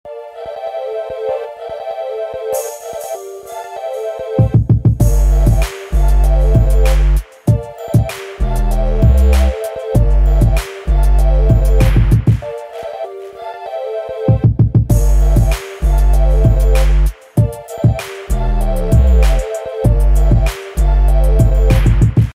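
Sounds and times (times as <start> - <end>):
drums playing: 4.4 - 12.5, 14.3 - 22.3.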